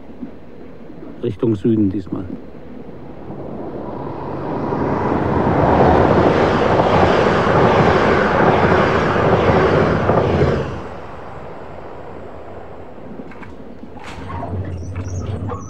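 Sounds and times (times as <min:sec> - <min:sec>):
speech: 0:01.2 - 0:02.6
train: 0:02.3 - 0:15.6.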